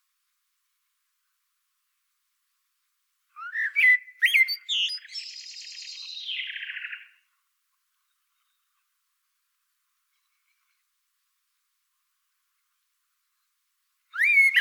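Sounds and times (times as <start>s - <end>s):
Common blackbird Turdus merula singing warbled phrases: 3.4s - 7.2s, 14.1s - 14.5s.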